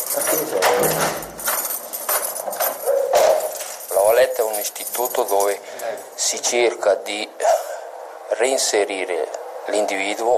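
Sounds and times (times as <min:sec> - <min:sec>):
footsteps echoing in corridors: 0:00.0 - 0:06.0
keys rattling: 0:00.0 - 0:06.2
speech: 0:00.2 - 0:01.3, 0:04.5 - 0:07.6, 0:08.3 - 0:10.3.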